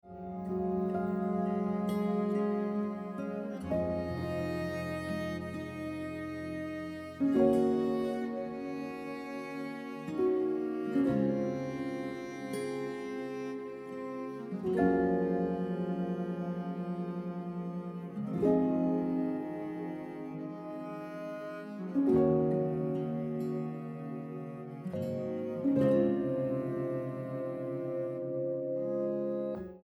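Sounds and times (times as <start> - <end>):
piano music: 0.0 - 29.8.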